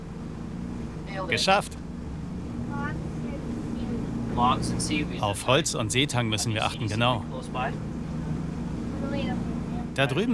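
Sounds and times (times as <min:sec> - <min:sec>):
motorboat engine drone: 0:00.0 - 0:10.3
speech: 0:01.2 - 0:01.8, 0:04.4 - 0:07.9, 0:10.0 - 0:10.3.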